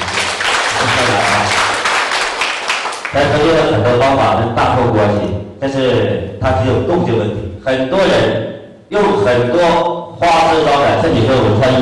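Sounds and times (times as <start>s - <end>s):
audience applause: 0.0s - 3.2s
speech: 3.1s - 11.8s.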